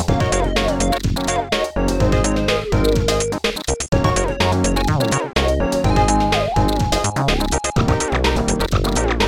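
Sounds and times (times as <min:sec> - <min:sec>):
tune: 0:00.1 - 0:09.1.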